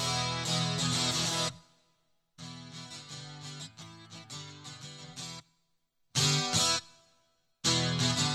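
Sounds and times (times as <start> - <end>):
guitar loop: 0.0 - 1.6, 2.4 - 5.4, 6.2 - 7.0, 7.6 - 8.3.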